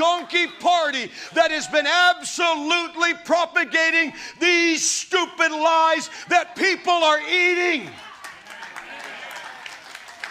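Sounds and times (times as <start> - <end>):
speech: 0.0 - 8.1
weak clapping: 7.9 - 10.2.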